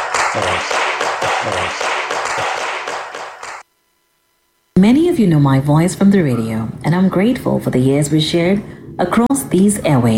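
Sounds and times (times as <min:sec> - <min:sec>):
audience applause: 0:00.0 - 0:03.6
speech: 0:00.4 - 0:02.7, 0:04.8 - 0:10.1.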